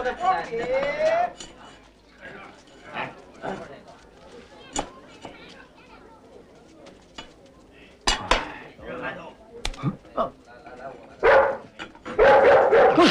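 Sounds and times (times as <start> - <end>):
speech: 0.0 - 1.6
dog barking and yipping: 11.2 - 13.0.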